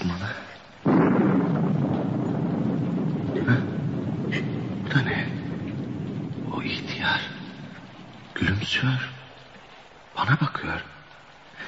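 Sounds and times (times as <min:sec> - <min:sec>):
rain: 0:00.0 - 0:11.6
thunder: 0:00.8 - 0:08.8
speech: 0:08.6 - 0:09.1, 0:10.2 - 0:10.9.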